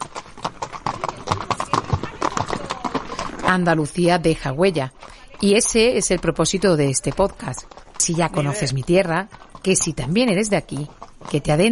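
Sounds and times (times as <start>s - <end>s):
horse hooves clip-clopping: 0.0s - 11.6s
speech: 3.5s - 11.6s.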